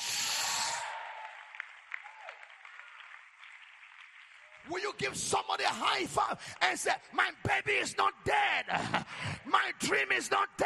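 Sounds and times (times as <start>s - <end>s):
audience clapping: 0.8s - 6.8s
speech: 4.6s - 10.6s.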